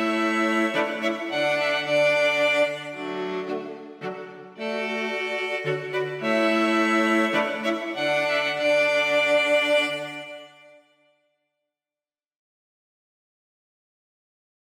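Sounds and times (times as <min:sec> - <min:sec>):
string quartet playing an anglaise and minuet: 0:00.0 - 0:10.8.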